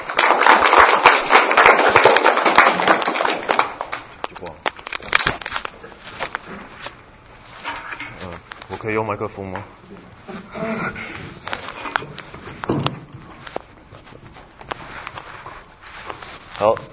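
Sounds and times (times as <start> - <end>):
audience applause: 0.0 - 4.1
speech: 8.8 - 11.4, 16.6 - 16.9.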